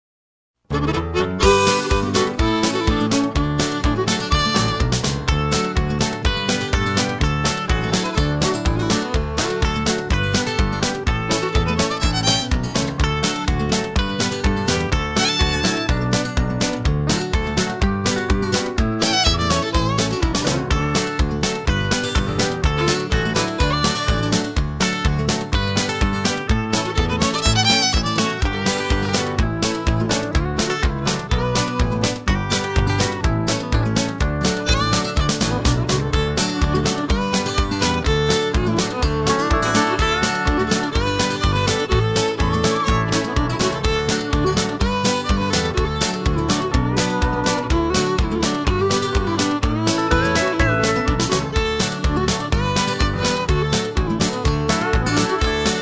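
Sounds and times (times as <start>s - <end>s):
square dance music: 0.7s - 55.8s.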